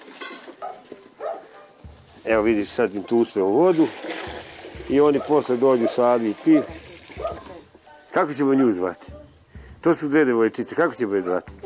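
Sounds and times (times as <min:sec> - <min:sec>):
metallic clinks and scrapes of food tipped into cooking pots: 0:00.0 - 0:02.3
speech: 0:02.2 - 0:04.1, 0:04.9 - 0:06.8, 0:08.2 - 0:09.2, 0:09.8 - 0:11.5.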